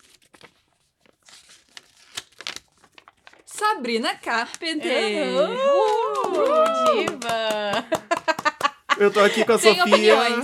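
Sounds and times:
paper envelope torn open at an awards announcement: 0:00.0 - 0:04.7
speech: 0:03.6 - 0:08.0, 0:09.0 - 0:10.4
laughter: 0:04.8 - 0:10.4.

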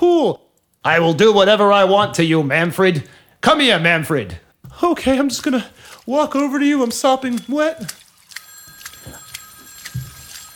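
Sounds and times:
speech: 0:00.0 - 0:08.0
phone ringing: 0:08.4 - 0:10.5.

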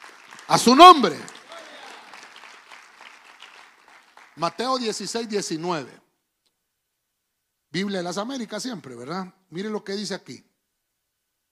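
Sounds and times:
people clapping: 0:00.0 - 0:05.6
speech: 0:00.5 - 0:01.4, 0:04.4 - 0:06.0, 0:07.7 - 0:10.5.

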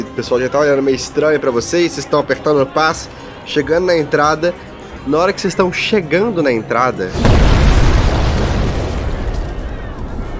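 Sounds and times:
speech: 0:00.2 - 0:07.6
door explosion with crackling debris-like roar: 0:07.2 - 0:10.1.

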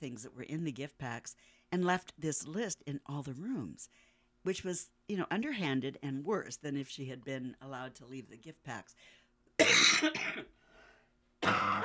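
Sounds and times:
speech: 0:00.0 - 0:10.6, 0:11.4 - 0:11.8
person with asthma coughing: 0:09.6 - 0:10.5, 0:11.4 - 0:11.8
person with asthma clearing throat: 0:11.4 - 0:11.8.

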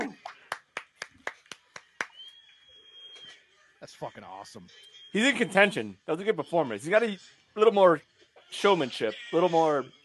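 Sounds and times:
hands clapping: 0:00.0 - 0:02.4
speech: 0:03.8 - 0:10.0.

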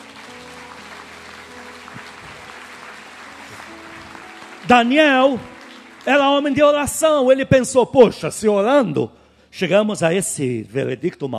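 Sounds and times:
audience applause: 0:00.0 - 0:07.4
speech: 0:04.7 - 0:11.3.

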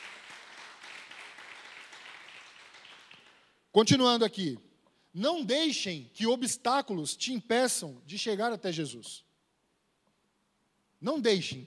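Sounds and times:
audience applause: 0:00.0 - 0:03.5
speech: 0:03.7 - 0:09.3, 0:11.0 - 0:11.6.

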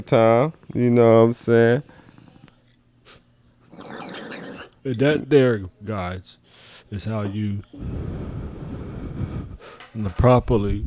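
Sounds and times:
speech: 0:00.0 - 0:02.0, 0:04.8 - 0:08.4, 0:10.0 - 0:10.8
faint breathy puffs: 0:00.0 - 0:04.8, 0:07.7 - 0:10.0.

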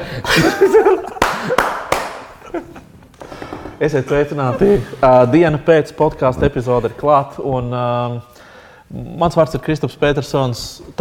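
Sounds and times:
speech: 0:00.0 - 0:01.1, 0:03.8 - 0:08.3, 0:08.9 - 0:10.9
laughter: 0:00.2 - 0:03.0, 0:03.8 - 0:05.6
hosts clapping hands: 0:01.0 - 0:02.4.

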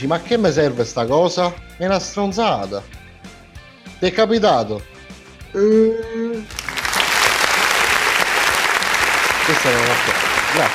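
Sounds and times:
speech: 0:00.0 - 0:03.0, 0:04.0 - 0:04.9, 0:05.5 - 0:06.6, 0:09.6 - 0:10.7
audience applause: 0:06.6 - 0:10.7.

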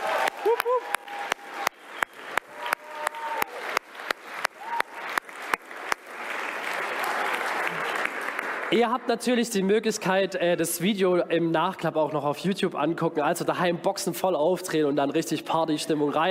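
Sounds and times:
whoops from the crowd: 0:00.0 - 0:03.8, 0:04.4 - 0:05.2
crowd clapping in steady unison: 0:00.0 - 0:09.0
speech: 0:08.7 - 0:16.2.

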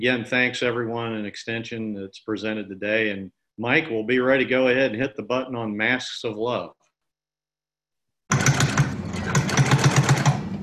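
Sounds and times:
speech: 0:00.0 - 0:06.8
sewing machines stitching face masks in Tennessee: 0:08.3 - 0:10.6.

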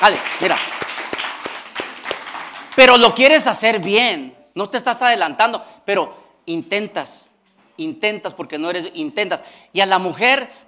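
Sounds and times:
speech: 0:00.0 - 0:00.9, 0:02.8 - 0:10.6
audience applause: 0:00.0 - 0:02.9.

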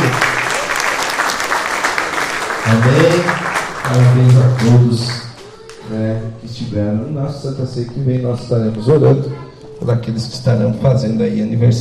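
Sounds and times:
audience applause: 0:00.0 - 0:05.8
speech: 0:02.7 - 0:05.2, 0:05.9 - 0:11.7.

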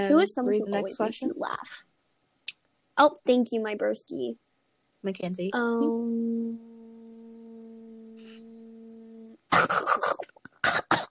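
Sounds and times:
speech: 0:00.0 - 0:01.9, 0:03.0 - 0:04.4, 0:05.0 - 0:06.7
low electrical hum: 0:00.0 - 0:11.1
person choking and coughing on spit or snot: 0:09.5 - 0:11.1.

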